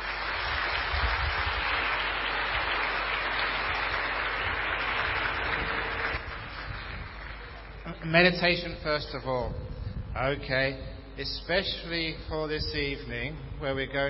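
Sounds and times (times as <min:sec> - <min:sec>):
audience applause welcoming a Buddhist monk: 0:00.0 - 0:08.1
speech: 0:08.0 - 0:14.0.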